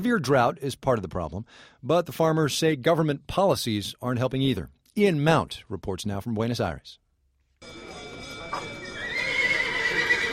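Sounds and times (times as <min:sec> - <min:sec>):
speech: 0:00.0 - 0:07.0
cattle auction market opening at the Mercado de Liniers: 0:07.6 - 0:10.3.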